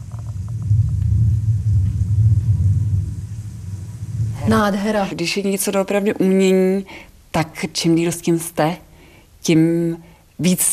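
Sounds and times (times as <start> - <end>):
thunderstorm rumble from exhibit speakers: 0.0 - 6.0
speech: 4.5 - 10.7.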